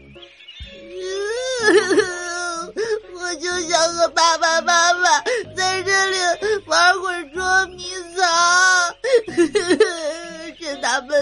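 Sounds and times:
voice acting out crying: 1.0s - 6.8s, 8.6s - 11.2s.

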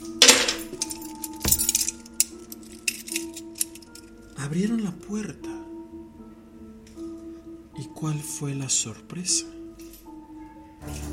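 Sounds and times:
bunch of keys jingling: 0.0s - 4.3s
speech: 4.4s - 5.5s, 8.0s - 9.6s.

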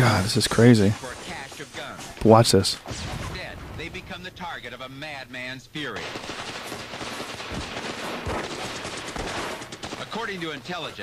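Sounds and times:
speech: 0.0s - 3.1s, 4.2s - 6.9s, 10.1s - 11.0s
gunfire shot through a wall during the Waco Branch Davidians raid: 0.4s - 4.2s, 6.0s - 11.0s.

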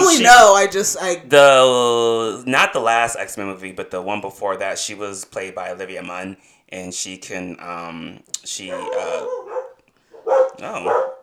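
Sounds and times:
speech: 0.2s - 9.5s, 10.2s - 11.1s
dogs barking: 8.6s - 11.2s.

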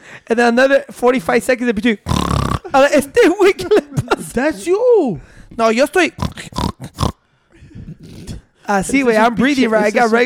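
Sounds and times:
speech: 0.3s - 6.9s, 8.7s - 10.2s
voice imitating pig snorts and grunts: 2.0s - 2.8s, 6.1s - 7.2s, 7.9s - 8.6s.

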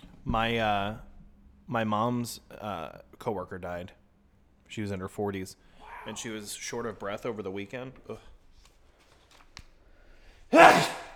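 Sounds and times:
speech: 0.2s - 1.1s, 1.7s - 4.0s, 4.7s - 8.3s
person sneezing: 10.5s - 11.1s.

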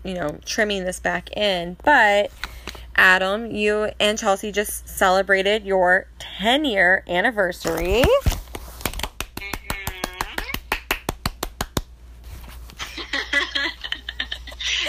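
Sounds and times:
speech: 0.0s - 8.4s
clapping: 9.0s - 11.9s
laughter: 12.8s - 14.8s.

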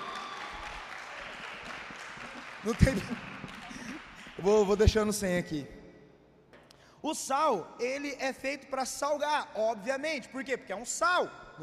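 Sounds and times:
round of applause: 0.0s - 5.1s
laughter: 1.1s - 4.8s
speech: 2.6s - 3.3s, 4.4s - 5.8s, 7.0s - 11.6s.

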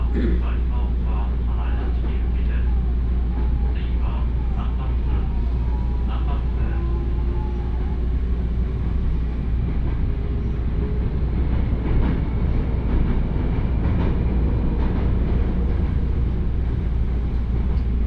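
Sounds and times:
faint voices: 0.0s - 8.4s
train rumbling and rattling: 0.0s - 18.0s
tonal whines: 2.2s - 11.2s.

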